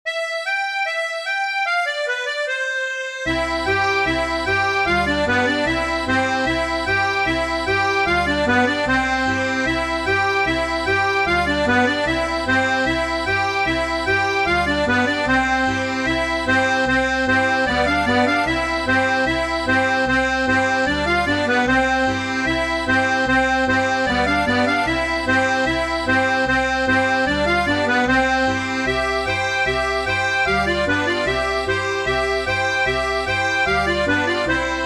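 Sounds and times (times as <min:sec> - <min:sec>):
polka music: 0:00.1 - 0:34.8.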